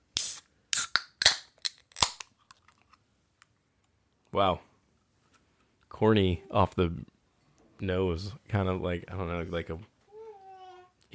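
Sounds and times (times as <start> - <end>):
can of lime-and-salt flavored non-alcoholic beer cracked open: 0.2 - 2.9
speech: 4.3 - 4.7, 6.0 - 7.1, 7.8 - 9.9.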